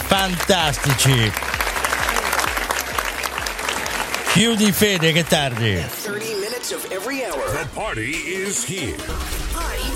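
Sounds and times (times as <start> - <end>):
applause for two DJs on a dance radio station: 0.0 - 7.2
speech: 0.2 - 1.6, 4.4 - 9.9.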